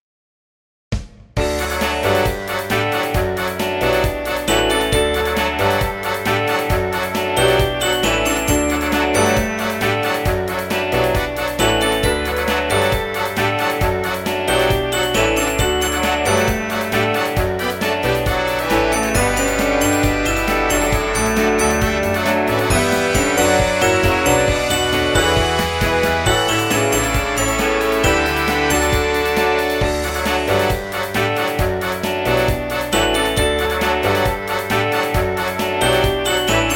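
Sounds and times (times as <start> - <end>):
TV channel jingle: 1.4 - 36.7.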